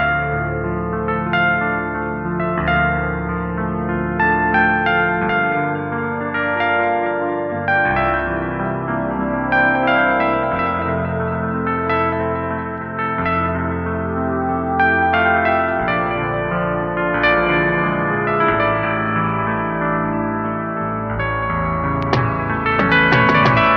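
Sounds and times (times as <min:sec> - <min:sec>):
sad piano: 0:00.0 - 0:23.7.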